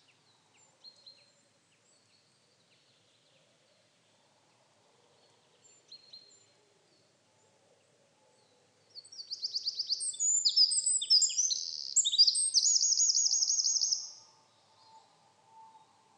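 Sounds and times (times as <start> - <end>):
Eurasian wren Troglodytes troglodytes singing: 9.0 - 14.2.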